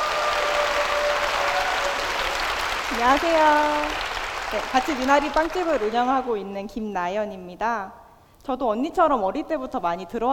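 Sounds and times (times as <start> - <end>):
audience applause: 0.0 - 6.2
speech: 2.9 - 10.3.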